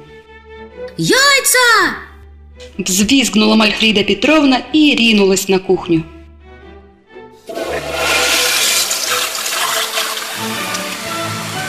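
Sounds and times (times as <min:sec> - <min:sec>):
speech: 0:00.8 - 0:06.1
toilet flushing: 0:07.4 - 0:11.6.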